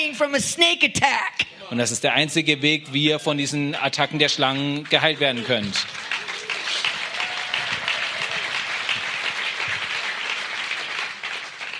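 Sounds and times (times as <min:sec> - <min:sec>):
speech: 0:00.0 - 0:06.0
crowd applauding: 0:04.0 - 0:11.7.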